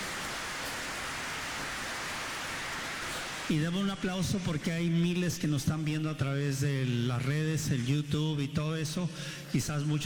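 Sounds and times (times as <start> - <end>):
audience applause: 0.0 - 3.5
speech: 3.5 - 10.0.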